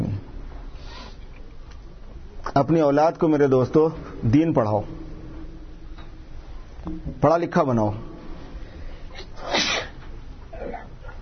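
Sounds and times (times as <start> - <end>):
low steady hiss: 0.0 - 11.1
speech: 2.6 - 5.0, 6.8 - 8.1
sneeze: 9.3 - 10.0.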